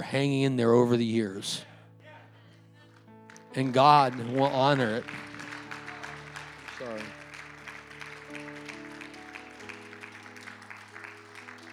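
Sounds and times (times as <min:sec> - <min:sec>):
speech: 0:00.1 - 0:01.7, 0:03.6 - 0:05.3
audience clapping: 0:02.8 - 0:11.7.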